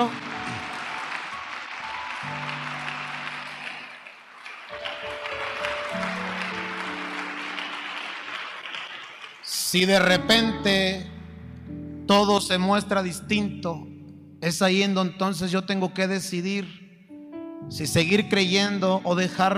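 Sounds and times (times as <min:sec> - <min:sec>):
speech: 0:00.0 - 0:00.2, 0:09.7 - 0:11.1, 0:12.1 - 0:16.8, 0:17.7 - 0:19.5
audience applause: 0:00.0 - 0:10.1.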